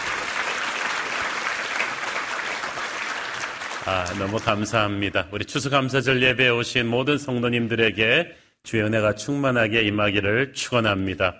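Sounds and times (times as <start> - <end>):
audience applause: 0.0 - 4.8
speech: 3.9 - 11.3.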